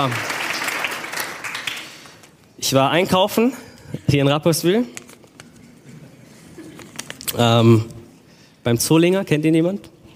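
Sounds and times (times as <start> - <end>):
speech: 0.0 - 0.3, 2.6 - 5.0, 7.3 - 8.0, 8.6 - 9.9
audience applause: 0.0 - 2.2.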